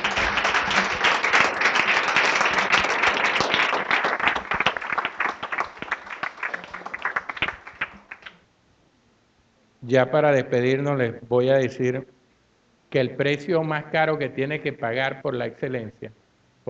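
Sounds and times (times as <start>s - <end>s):
audience applause: 0.0s - 8.4s
speech: 9.9s - 12.1s, 12.9s - 16.6s.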